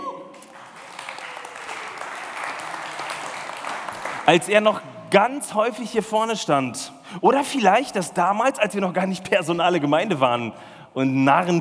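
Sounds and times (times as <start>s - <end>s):
audience applause: 0.0s - 4.6s
speech: 4.3s - 11.5s.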